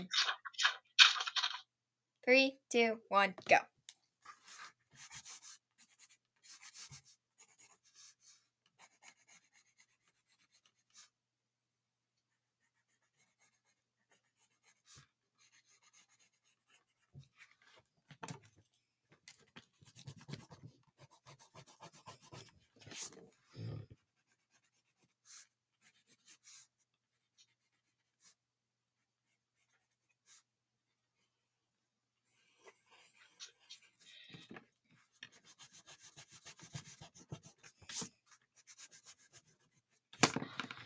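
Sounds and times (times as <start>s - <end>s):
hand-drawing an anime eye on paper: 0.0s - 1.6s, 4.3s - 11.2s, 12.4s - 17.8s, 19.4s - 28.4s, 29.2s - 30.5s, 32.3s - 40.3s
speech: 2.3s - 3.8s.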